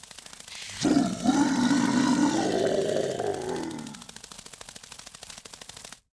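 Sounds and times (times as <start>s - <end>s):
monster sound: 0.5s - 4.2s.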